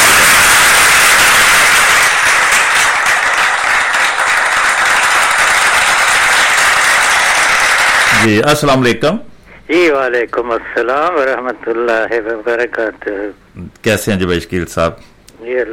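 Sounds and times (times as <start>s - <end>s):
applause greeting a guest of honour: 0.0s - 8.4s
speech: 8.2s - 15.7s.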